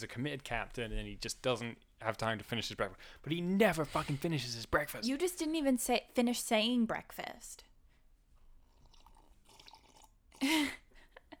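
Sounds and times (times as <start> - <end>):
speech: 0.0 - 7.7, 10.4 - 10.8
slurping coffee: 8.6 - 10.2.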